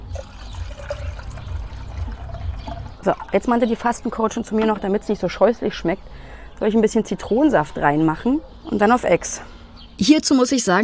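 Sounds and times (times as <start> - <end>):
cold water pouring into a glass: 0.0 - 3.9
speech: 3.0 - 10.8.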